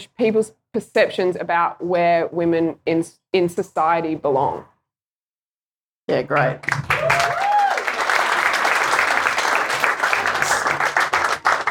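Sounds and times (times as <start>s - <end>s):
speech: 0.1s - 4.7s, 6.1s - 7.2s
audience clapping: 6.3s - 11.6s.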